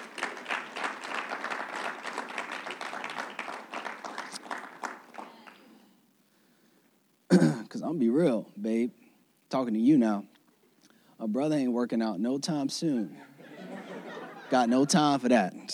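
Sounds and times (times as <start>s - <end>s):
audience hand clapping: 0.0s - 5.8s
speech: 7.8s - 10.3s, 11.2s - 13.3s, 14.5s - 15.7s
laughter: 13.1s - 15.2s.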